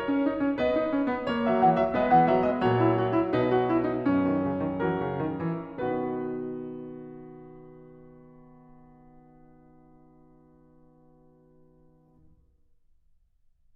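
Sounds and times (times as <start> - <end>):
keyboard prelude: 0.1 - 7.1.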